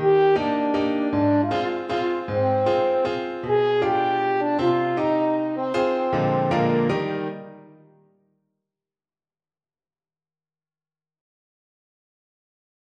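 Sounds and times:
French horn playing a waltz: 0.0 - 7.6.

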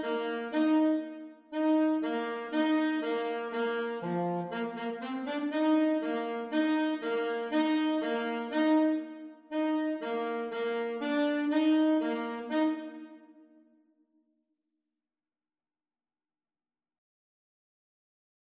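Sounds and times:
clarinet and saxophone duet: 0.0 - 13.4.

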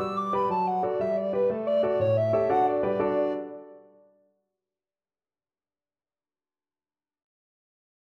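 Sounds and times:
alto recorder playing an Irish jig medley: 0.3 - 3.6.

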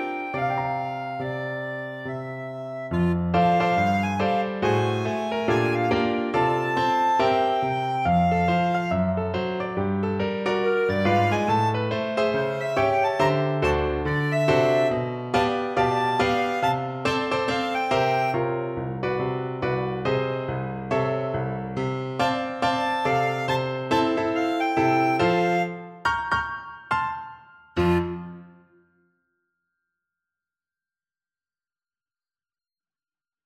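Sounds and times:
clarinet: 0.0 - 21.5, 22.2 - 26.3, 27.8 - 28.8
jump blues music: 2.3 - 20.4, 22.0 - 25.9.

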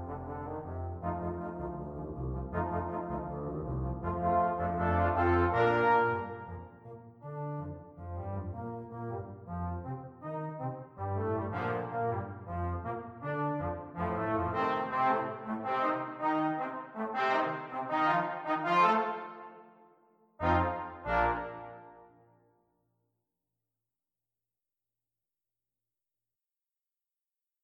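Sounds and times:
brass quintet playing salsa: 0.0 - 19.7, 20.4 - 22.1.

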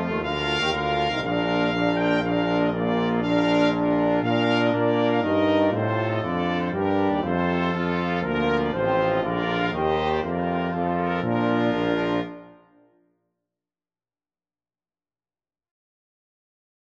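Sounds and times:
brass quintet playing a trumpet tune: 0.0 - 12.9.

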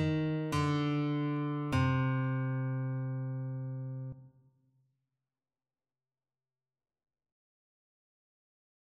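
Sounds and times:
guitar duet: 0.0 - 4.3.

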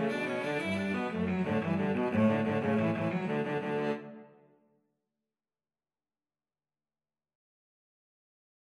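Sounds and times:
cello duet playing an Irish jig medley: 0.0 - 4.2.

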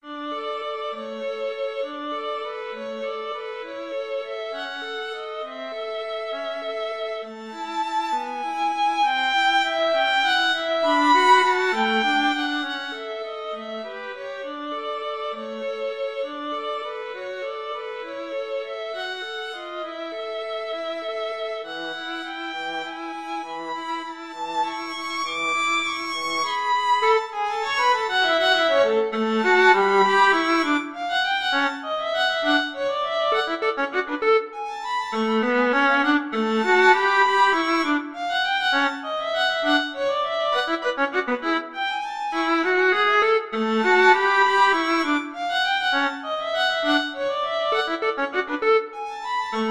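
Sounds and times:
violin and viola duet: 0.0 - 49.6.

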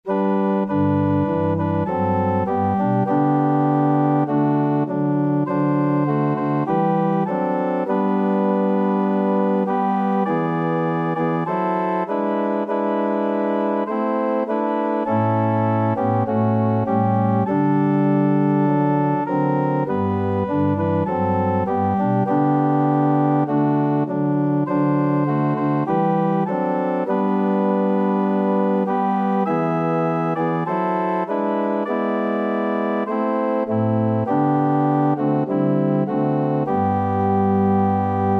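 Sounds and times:
organ: 0.0 - 38.3.

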